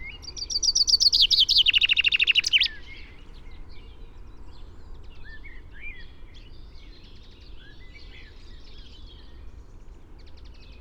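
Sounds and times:
Common chaffinch Fringilla coelebs singing: 0.1s - 3.0s.

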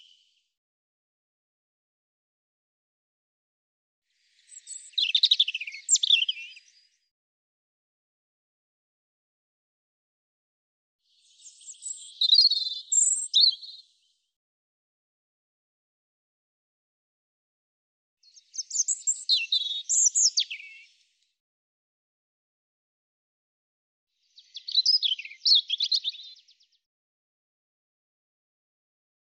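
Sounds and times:
European robin singing warbled phrases: 4.4s - 6.9s, 11.1s - 13.9s, 18.2s - 21.0s, 24.2s - 26.6s.

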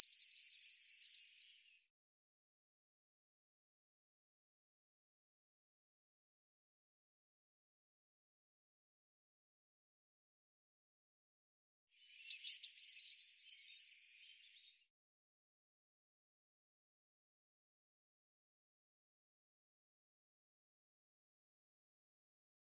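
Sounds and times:
bird song: 0.0s - 1.9s, 11.9s - 15.0s.

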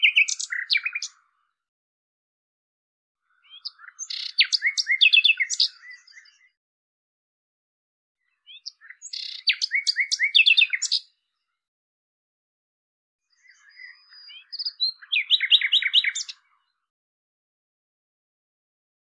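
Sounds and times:
Common nightingale song with chirps and rattling series: 3.6s - 6.4s, 8.5s - 11.0s, 13.4s - 16.4s.

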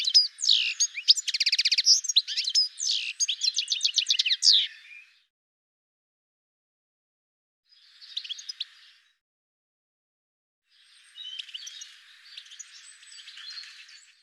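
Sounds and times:
bird chirps and trills: 0.0s - 5.2s, 7.7s - 9.1s, 10.7s - 14.2s.

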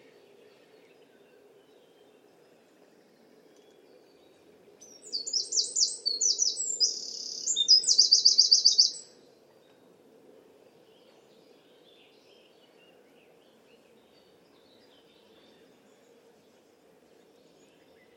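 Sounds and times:
bird song: 0.0s - 9.9s, 10.5s - 18.1s.

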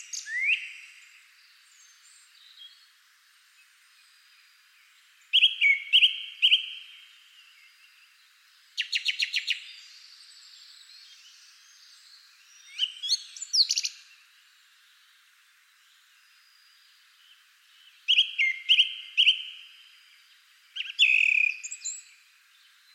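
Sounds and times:
bird high piping calls with sharp chips and brief trills: 0.0s - 2.8s, 5.3s - 8.0s, 8.8s - 10.4s, 11.0s - 14.1s, 17.9s - 19.8s, 20.7s - 22.2s.

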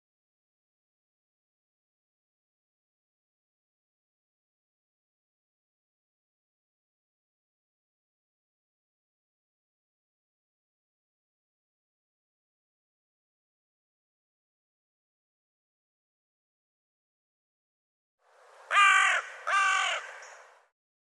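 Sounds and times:
bird harsh raspy caws: 18.7s - 20.5s.

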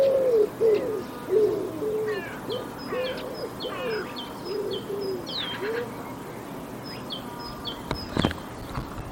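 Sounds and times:
bird cooing: 0.0s - 6.0s.

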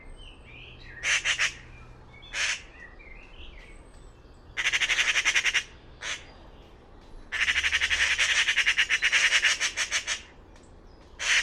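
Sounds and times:
bird squawking: 4.6s - 6.2s, 7.3s - 10.3s, 11.2s - 11.4s.

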